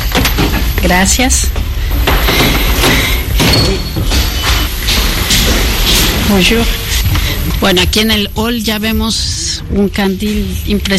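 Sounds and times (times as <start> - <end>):
glass museum doors sliding open: 0.0 - 8.1
loud steady rush of noise and low rumble: 0.0 - 10.9
speech: 0.8 - 3.8, 6.3 - 10.9.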